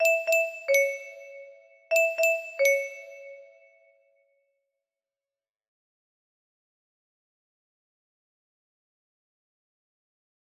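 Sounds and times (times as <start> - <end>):
music box lullaby melody: 0.0 - 3.9.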